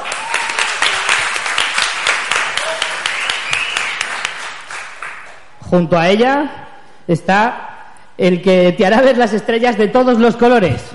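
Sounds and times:
audience applause: 0.0 - 5.4
speech: 5.7 - 10.9.

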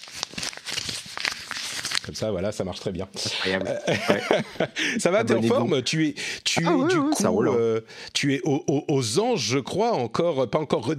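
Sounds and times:
paper being scratched and crumpled: 0.0 - 2.3
speech: 2.1 - 10.9
laughter: 3.6 - 5.8.

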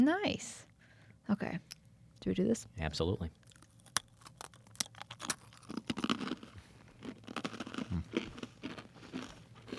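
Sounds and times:
speech: 0.0 - 0.6, 1.3 - 3.4
biting into a crunchy pretzel: 3.4 - 9.7.

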